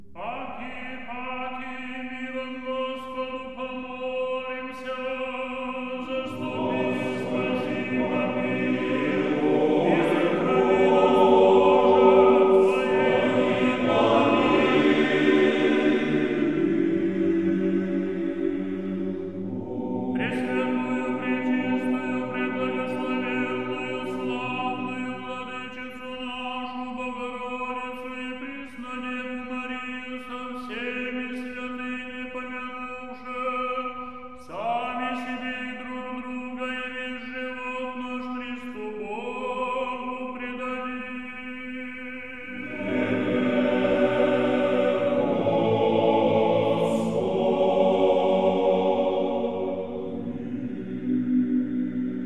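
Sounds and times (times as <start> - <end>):
choir singing a small ekteny: 0.6 - 52.2.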